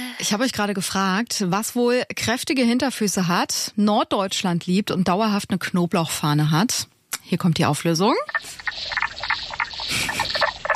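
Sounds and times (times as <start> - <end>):
hissy outdoor background: 0.0 - 10.3
speech: 0.2 - 9.2
burst of broadband noise: 8.2 - 10.7
common spadefoot toad calling: 8.3 - 10.7.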